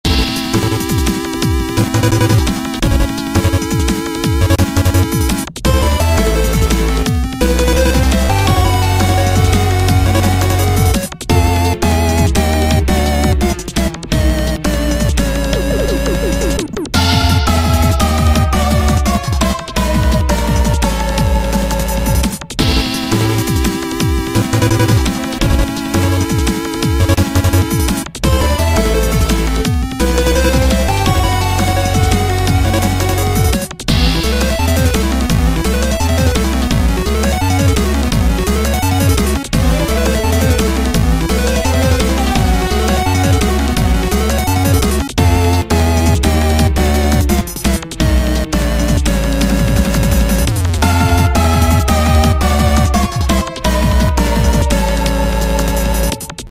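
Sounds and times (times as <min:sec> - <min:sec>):
boss level music: 0:00.0 - 0:56.4.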